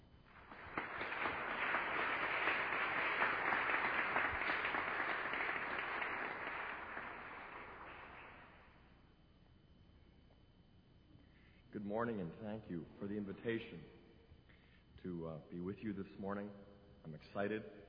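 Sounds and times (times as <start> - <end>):
audience applause welcoming guest Scott Hahn: 0.0 - 8.6
speech: 11.9 - 14.0, 15.0 - 17.8.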